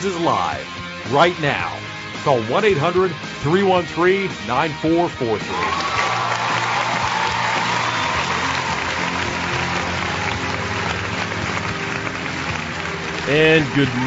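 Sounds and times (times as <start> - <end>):
speech: 0.0 - 6.0, 13.3 - 14.0
applause: 5.6 - 14.0.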